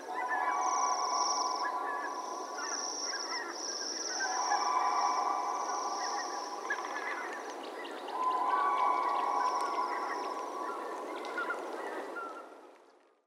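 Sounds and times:
Bohemian waxwing: 0:00.1 - 0:12.2.

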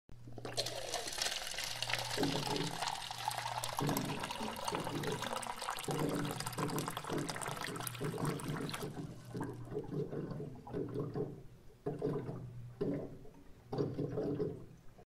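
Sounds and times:
water cooler: 0:00.2 - 0:15.0.

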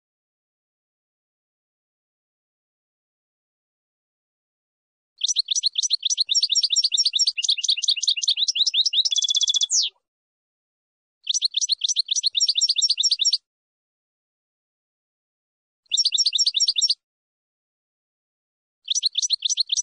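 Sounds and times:
finch song: 0:05.2 - 0:10.0, 0:11.2 - 0:13.4, 0:15.8 - 0:17.0, 0:18.9 - 0:19.8.

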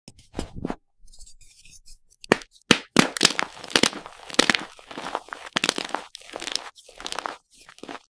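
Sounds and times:
chalk crunching: 0:02.8 - 0:08.1.

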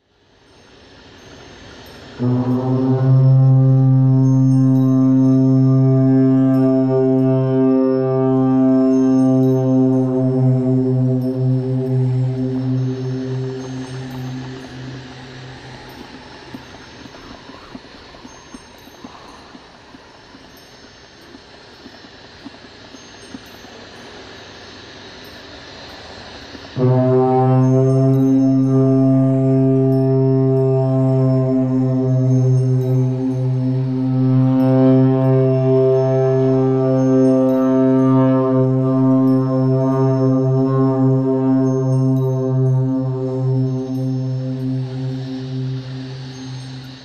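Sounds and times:
Shakh Nafir horn playing: 0:02.2 - 0:18.5, 0:26.7 - 0:47.0.

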